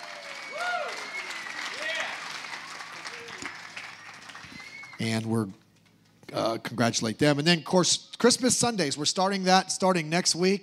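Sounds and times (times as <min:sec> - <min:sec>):
audience at a Sunday service applauding an engaged couple: 0:00.0 - 0:05.3
speech: 0:05.0 - 0:05.6, 0:06.3 - 0:10.6.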